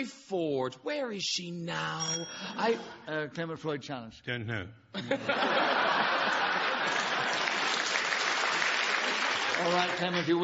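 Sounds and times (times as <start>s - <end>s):
speech: 0.0s - 7.0s, 9.6s - 10.4s
laughter: 5.0s - 7.8s, 9.6s - 10.4s
audience applause: 5.9s - 10.4s.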